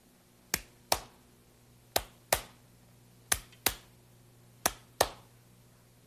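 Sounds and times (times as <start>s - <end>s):
hand clapping: 0.5s - 1.2s, 1.9s - 2.6s, 3.3s - 3.9s, 4.6s - 5.3s.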